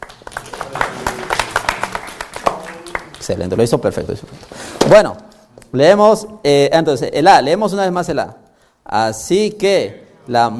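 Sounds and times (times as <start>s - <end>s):
small group clapping for a student during a Bible lesson: 0.0s - 4.5s
speech: 3.2s - 10.5s.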